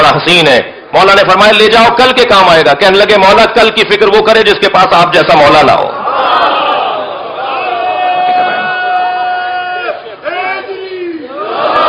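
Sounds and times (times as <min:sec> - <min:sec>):
speech: 0:00.2 - 0:06.4
crowd shouting the religious slogan in unison: 0:06.0 - 0:11.8.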